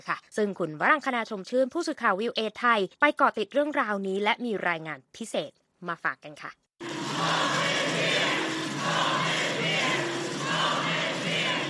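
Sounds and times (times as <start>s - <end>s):
speech: 0.0s - 6.6s
large crowd of protesters shouting a slogan in unison: 6.8s - 11.6s.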